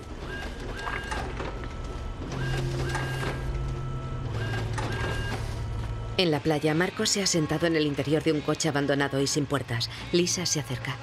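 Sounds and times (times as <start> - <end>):
photocopier making copies: 0.0 - 6.0
speech: 6.2 - 11.0.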